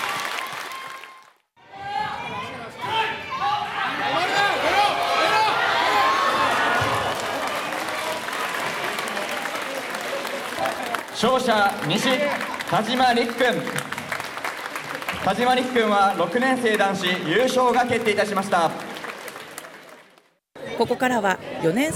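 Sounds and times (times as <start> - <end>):
large crowd applauding at sumo bout: 0.0 - 1.4, 4.2 - 20.4
scattered cheers and voices at sumo bout: 0.0 - 20.8
speech: 11.2 - 13.9, 15.2 - 18.9, 20.8 - 21.9.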